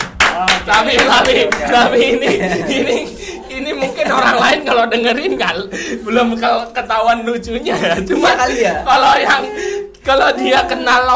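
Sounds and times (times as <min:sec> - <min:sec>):
hand clapping: 0:00.0 - 0:02.4
laughter: 0:00.4 - 0:10.8
speech: 0:00.4 - 0:11.1.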